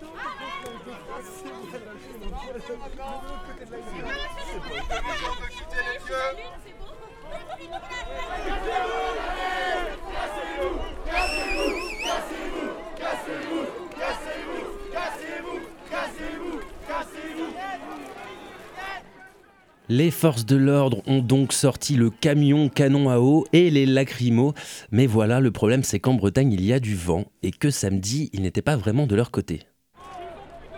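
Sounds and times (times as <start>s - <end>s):
large protest crowd shouting: 0.0s - 23.4s, 30.0s - 30.7s
speech: 0.9s - 6.7s, 19.9s - 29.7s.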